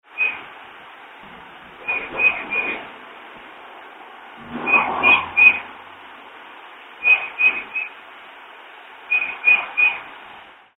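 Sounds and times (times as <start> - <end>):
steady hiss: 0.1 - 10.7
bird whistled notes: 4.7 - 5.6, 7.0 - 7.9, 9.1 - 10.0.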